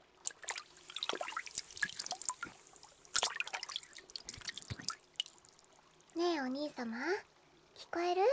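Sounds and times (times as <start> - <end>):
warm hot spring water poured over an ear: 0.2 - 6.2
speech: 6.4 - 7.3, 7.9 - 8.3.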